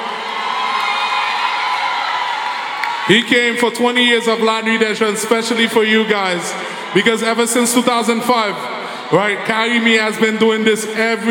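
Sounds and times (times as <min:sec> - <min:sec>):
shrill whoops and shouts: 0:00.0 - 0:03.2
audience cheering at a youth night event: 0:00.0 - 0:08.6
speech: 0:03.1 - 0:11.2.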